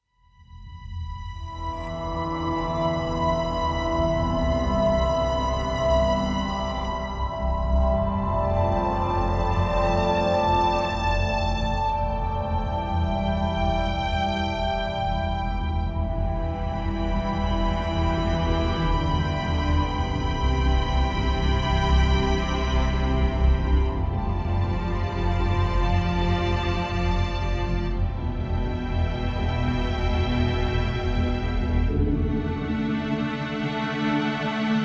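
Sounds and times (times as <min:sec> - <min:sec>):
ambient music: 0:00.5 - 0:34.8.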